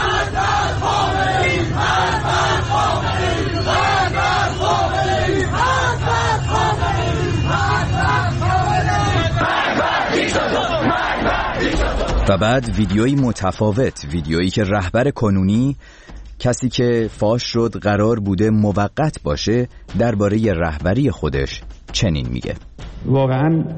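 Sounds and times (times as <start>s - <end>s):
street crowds in Iran chanting a slogan: 0.0s - 14.1s
speech: 12.3s - 23.7s.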